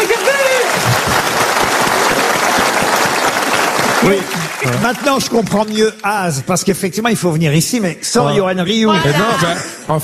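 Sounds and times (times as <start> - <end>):
crowd applauding: 0.0 - 6.4
speech: 4.0 - 10.0.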